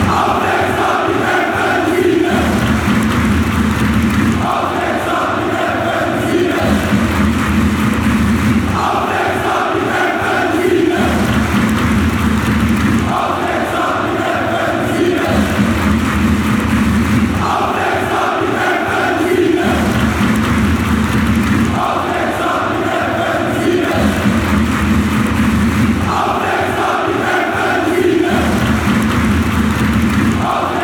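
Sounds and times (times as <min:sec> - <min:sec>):
football fans chanting: 0:00.0 - 0:30.8.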